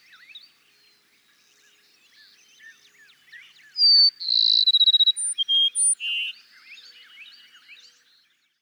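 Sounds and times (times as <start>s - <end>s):
other birds chirping softly: 0.0s - 8.6s
Cassin's sparrow singing whistle and trill: 3.8s - 6.3s.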